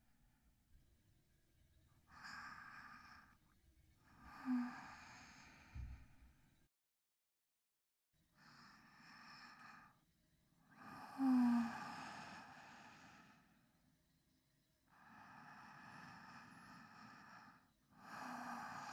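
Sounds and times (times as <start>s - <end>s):
sleep breathing recorded with binaural microphone: 2.1s - 3.4s, 4.0s - 6.2s, 8.5s - 10.0s, 10.7s - 13.7s, 14.9s - 18.9s.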